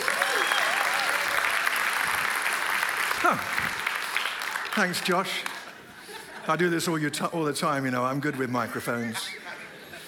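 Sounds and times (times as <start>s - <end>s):
audience clapping: 0.0s - 5.8s
speech: 3.2s - 3.8s, 4.8s - 5.5s, 6.4s - 9.4s
laughter: 5.7s - 7.0s, 8.9s - 10.0s.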